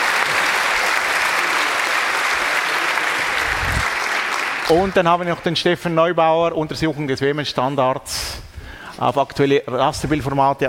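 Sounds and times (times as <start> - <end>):
audience applause: 0.0 - 5.4
speech: 4.7 - 10.6.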